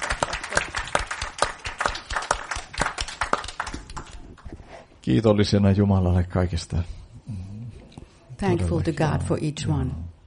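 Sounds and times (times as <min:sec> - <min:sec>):
audience clapping: 0:00.0 - 0:04.5
speech: 0:05.1 - 0:07.0, 0:08.4 - 0:10.1.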